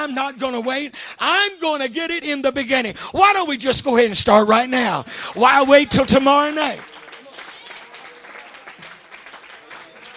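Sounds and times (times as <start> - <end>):
audience clapping: 0.0 - 0.9, 5.2 - 10.1
speech: 0.0 - 6.9.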